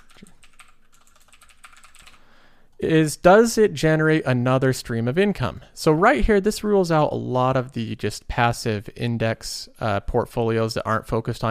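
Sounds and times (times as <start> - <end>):
typing on a computer keyboard: 0.0 - 2.2
speech: 2.8 - 11.4.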